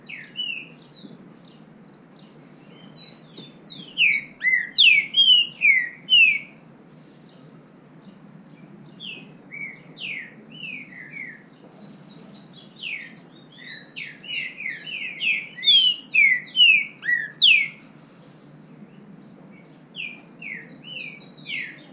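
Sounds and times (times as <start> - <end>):
high twittering birds: 0.0 - 21.9.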